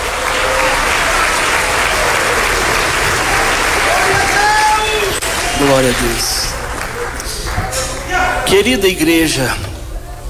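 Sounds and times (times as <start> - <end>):
audience clapping hands: 0.0 - 9.1
speech: 5.6 - 6.4, 8.5 - 9.7.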